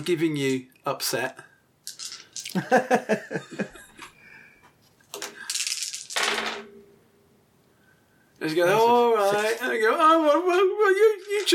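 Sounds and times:
speech: 0.0 - 1.5, 2.5 - 3.8, 8.4 - 11.5
dice clattering across a hard surface: 1.8 - 2.6, 5.1 - 6.7, 11.1 - 11.5
laughter: 2.5 - 4.0.

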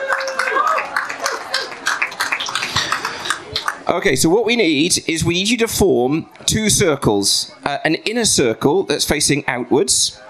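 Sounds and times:
muted round of applause: 0.0 - 4.0
speech: 3.9 - 10.2.

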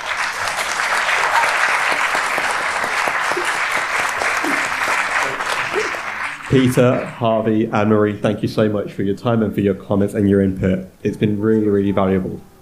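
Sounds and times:
audience applause: 0.0 - 7.7
speech: 6.5 - 12.5.

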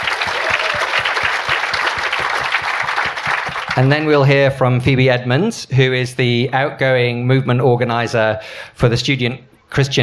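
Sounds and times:
audience applause: 0.0 - 4.2
speech: 3.8 - 10.0.

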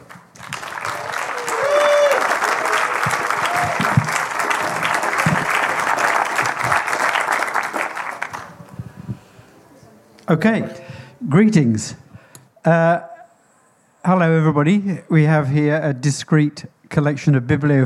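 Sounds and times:
audience applause: 0.0 - 8.8
speech: 10.3 - 12.0, 12.6 - 13.1, 14.1 - 17.8.

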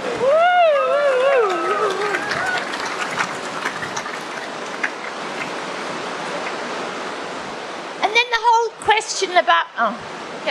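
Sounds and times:
heavy rain falling: 0.0 - 8.4
speech: 9.2 - 10.4.

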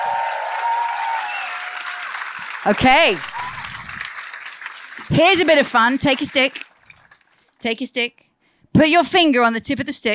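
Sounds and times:
audience round of applause: 0.0 - 7.3
speech: 2.6 - 3.3, 5.1 - 6.7, 7.6 - 8.2, 8.8 - 10.1.

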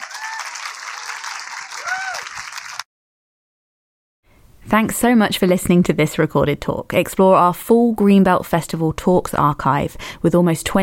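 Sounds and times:
audience applause: 0.0 - 2.9
speech: 4.7 - 10.8.

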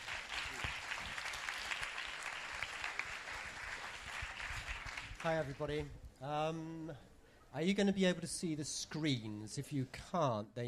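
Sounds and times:
audience clapping to welcome a speaker: 0.0 - 5.7
speech: 5.2 - 10.6.

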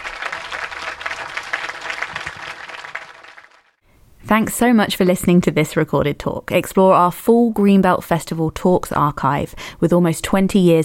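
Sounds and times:
audience applause after a talk: 0.0 - 3.8
speech: 4.3 - 10.8.

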